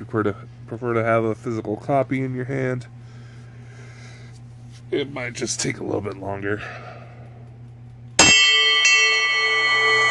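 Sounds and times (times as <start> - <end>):
speech: 0.0 - 3.0, 4.9 - 7.0
alarm ringing: 8.2 - 10.1.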